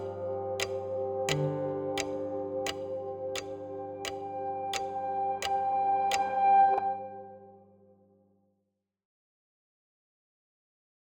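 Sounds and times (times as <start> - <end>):
background music: 0.0 - 8.0.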